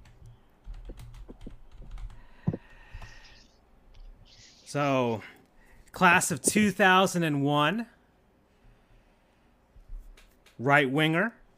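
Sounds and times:
quiet typing on a computer keyboard: 0.0s - 3.1s
speech: 4.7s - 5.4s, 6.0s - 8.0s, 10.6s - 11.4s.

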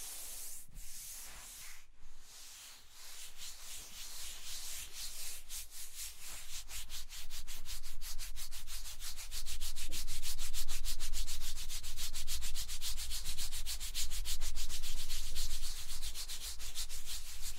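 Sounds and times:
scratching and tracing strokes across a surface: 0.0s - 17.5s.

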